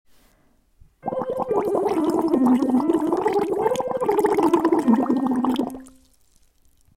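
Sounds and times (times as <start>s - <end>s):
descending U vowel sound: 1.0s - 6.0s.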